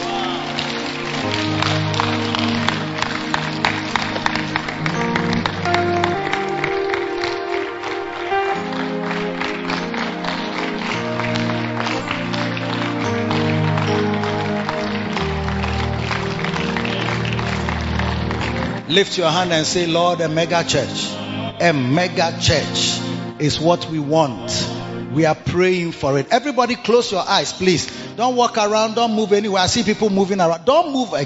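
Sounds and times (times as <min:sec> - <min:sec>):
audience clapping hands: 0:00.0 - 0:23.3
speech: 0:19.0 - 0:24.6, 0:25.2 - 0:31.2.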